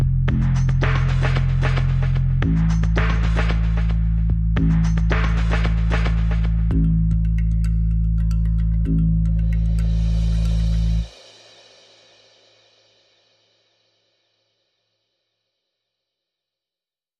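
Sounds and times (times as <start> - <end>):
drum and bass music: 0.0 - 11.8.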